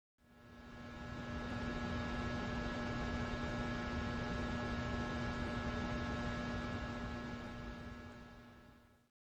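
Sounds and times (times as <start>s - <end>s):
hum: 0.3s - 9.0s.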